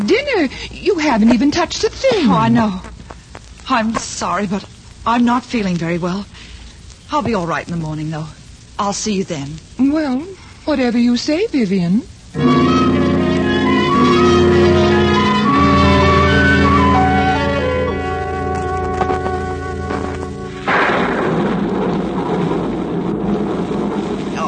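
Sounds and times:
speech: 0:00.1 - 0:02.9, 0:03.7 - 0:06.4, 0:07.1 - 0:12.8
thunderstorm: 0:12.4 - 0:24.4.

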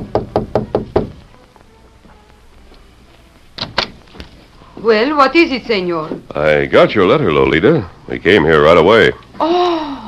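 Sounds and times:
knocking on a door: 0:00.0 - 0:01.2
speech: 0:04.8 - 0:09.7.

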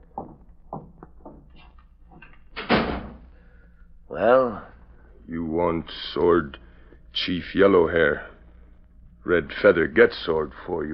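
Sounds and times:
door shutting: 0:02.5 - 0:03.3
speech: 0:04.2 - 0:04.6, 0:05.3 - 0:06.6, 0:07.2 - 0:08.3, 0:09.2 - 0:10.9.

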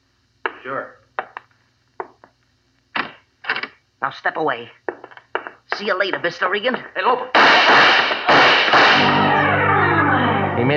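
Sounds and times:
speech: 0:00.6 - 0:01.0, 0:04.0 - 0:04.8, 0:05.8 - 0:09.4, 0:10.6 - 0:10.7
gunshots: 0:07.3 - 0:09.2.

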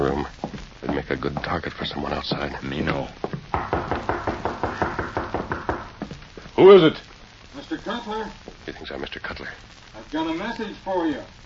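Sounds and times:
speech: 0:01.0 - 0:03.2, 0:06.6 - 0:11.4
knocking on the rear door of a home: 0:03.3 - 0:06.2.

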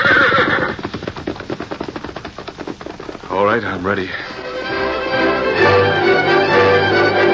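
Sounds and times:
horse whinnying: 0:00.0 - 0:00.9
horse hoofbeats galloping off: 0:00.0 - 0:07.2
speech: 0:03.6 - 0:04.4.

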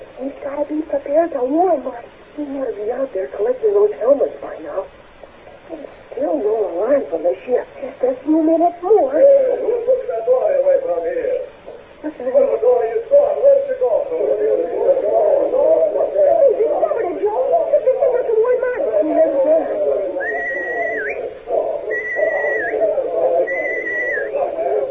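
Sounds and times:
murmur of voices: 0:00.0 - 0:24.9
speech: 0:00.2 - 0:05.0, 0:05.7 - 0:11.4, 0:12.0 - 0:14.7
whistle signals: 0:20.2 - 0:21.2, 0:21.9 - 0:22.8, 0:23.4 - 0:24.4.

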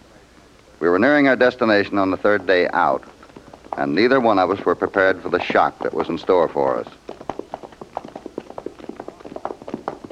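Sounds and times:
speech: 0:00.8 - 0:03.2, 0:03.8 - 0:07.1
horses ridden along a road: 0:02.2 - 0:10.1.

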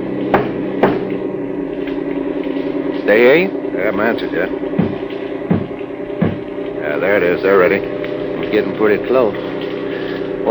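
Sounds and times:
steady low engine drone: 0:00.0 - 0:10.5
knocks on a truck cab wall: 0:00.3 - 0:01.1, 0:04.8 - 0:06.5
speech: 0:03.1 - 0:04.8, 0:07.0 - 0:09.4.

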